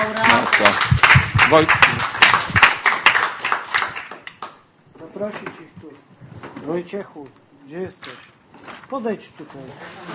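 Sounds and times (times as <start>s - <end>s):
crowd clapping for nominees: 0.0s - 4.6s
speech: 0.4s - 2.1s, 6.8s - 10.1s.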